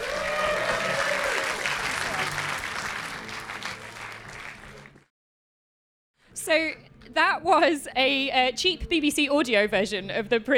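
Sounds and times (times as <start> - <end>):
faint voices or cheers: 0.0 - 4.9
audience applause: 0.0 - 5.1
speech: 6.4 - 10.5.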